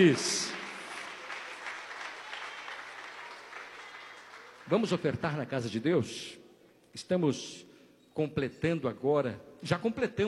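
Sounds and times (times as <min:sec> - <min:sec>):
speech: 0:00.0 - 0:00.5, 0:04.7 - 0:10.2
audience applauding: 0:00.0 - 0:05.4.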